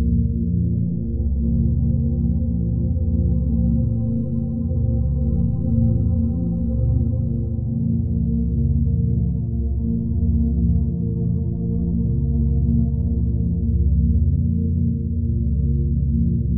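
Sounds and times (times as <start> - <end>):
warm flowing ambient synth soundscape: 0.1 - 16.5.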